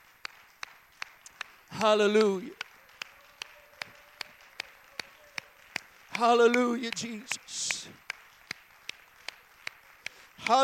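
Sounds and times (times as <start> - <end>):
audience clapping hands: 0.0 - 10.6
speech: 1.8 - 2.6, 6.2 - 8.0, 10.5 - 10.6.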